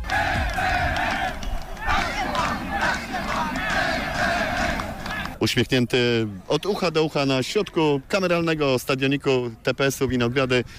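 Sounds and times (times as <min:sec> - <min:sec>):
football players and fans shouting and chanting celebrating promotion: 0:00.0 - 0:05.4
speech: 0:05.4 - 0:10.7.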